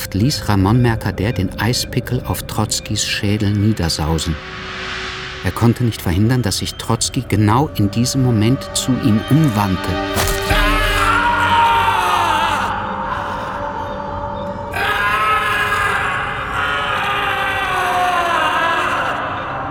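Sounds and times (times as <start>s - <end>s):
speech: 0.1s - 10.2s
man screaming in horror and pain: 10.2s - 13.6s, 14.7s - 19.6s.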